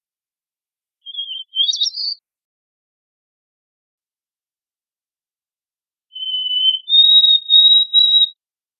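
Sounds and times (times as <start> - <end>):
White-throated sparrow song: 1.0 - 2.2, 6.1 - 8.4.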